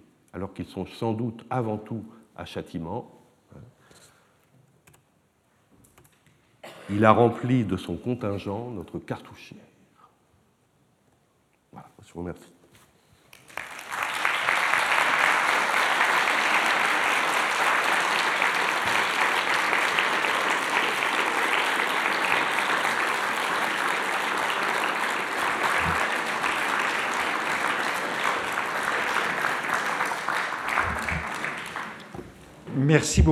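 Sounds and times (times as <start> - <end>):
speech: 0.4 - 4.0, 6.9 - 9.7, 11.8 - 12.6, 32.9 - 33.3
audience applause: 13.4 - 32.4.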